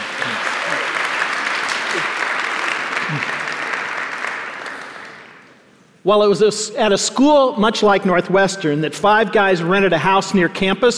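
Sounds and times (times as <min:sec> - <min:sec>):
audience applause welcoming a speaker: 0:00.0 - 0:05.6
speech: 0:06.0 - 0:10.9.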